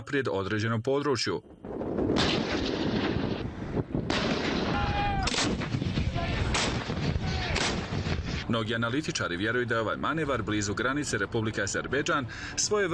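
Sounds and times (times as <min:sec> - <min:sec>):
speech: 0:00.0 - 0:02.4, 0:08.5 - 0:12.9
wind noise: 0:01.4 - 0:08.6
armoured units firing guns during Iranian military manoeuvre near the Azerbaijan border: 0:01.5 - 0:08.2.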